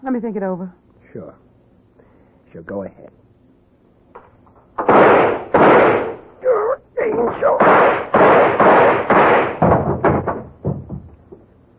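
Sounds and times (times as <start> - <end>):
speech: 0.0 - 1.5, 2.5 - 3.2, 5.2 - 9.0
gun fired until empty in a film scene: 4.8 - 6.3, 7.0 - 10.3.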